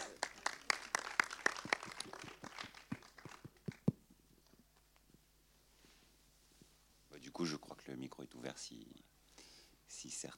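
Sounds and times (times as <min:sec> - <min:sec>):
applause: 0:00.0 - 0:04.0
speech: 0:07.4 - 0:09.2, 0:10.0 - 0:10.3.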